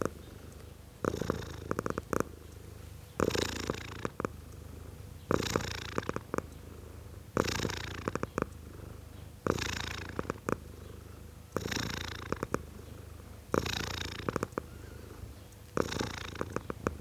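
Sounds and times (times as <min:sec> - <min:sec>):
tom cat purring: 0:00.0 - 0:16.9.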